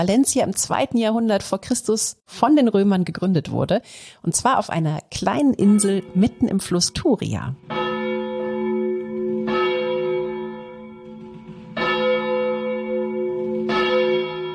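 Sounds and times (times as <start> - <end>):
speech: 0.0 - 7.8
church bells ringing at a cathedral: 5.5 - 14.5.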